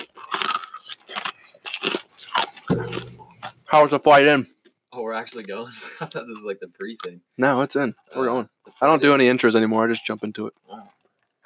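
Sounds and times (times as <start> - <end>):
person drinking water: 0.0 - 3.6
speech: 3.7 - 10.9.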